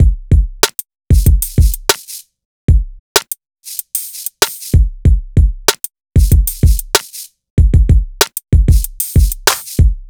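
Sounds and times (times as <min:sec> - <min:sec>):
urban drum beat: 0:00.0 - 0:10.0.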